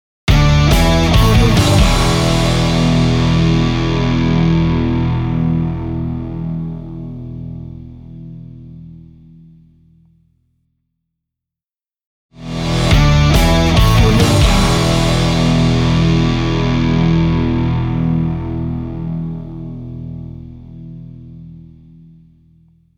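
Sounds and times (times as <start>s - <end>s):
rock guitar logo jingle: 0.3s - 8.9s, 12.4s - 21.8s.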